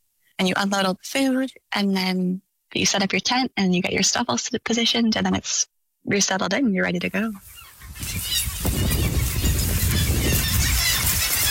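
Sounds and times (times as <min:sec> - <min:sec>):
speech: 0:00.4 - 0:08.3
colony of seabirds calling: 0:07.4 - 0:11.5.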